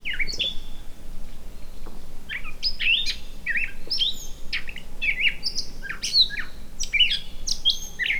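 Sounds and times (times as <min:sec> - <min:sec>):
bird song: 0:00.0 - 0:00.9, 0:01.5 - 0:08.1.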